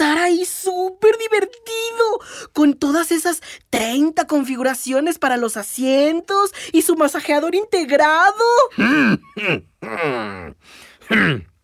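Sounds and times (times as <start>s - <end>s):
speech: 1.0s - 11.5s
person in a Lincoln Aviator clearing throat: 8.7s - 11.6s.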